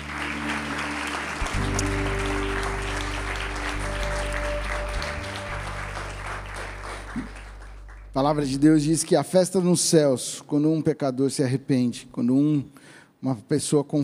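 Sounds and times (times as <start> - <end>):
audience applause: 0.0 - 8.8
speech: 8.2 - 14.0.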